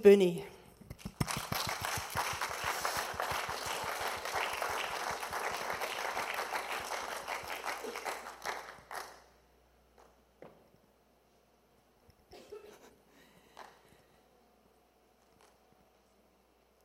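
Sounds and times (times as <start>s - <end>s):
speech: 0.0s - 1.1s
audience applause: 1.2s - 9.2s.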